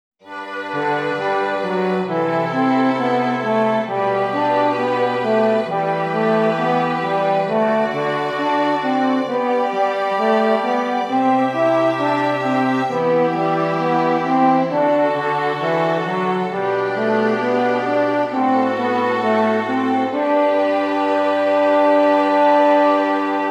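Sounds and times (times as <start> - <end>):
contrapuntal music: 0.3 - 23.4.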